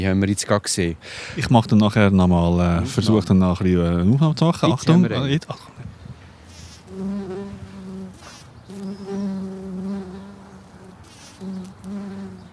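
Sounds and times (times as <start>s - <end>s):
speech: 0.0s - 5.8s
wild bees buzzing around flowers: 6.8s - 12.5s.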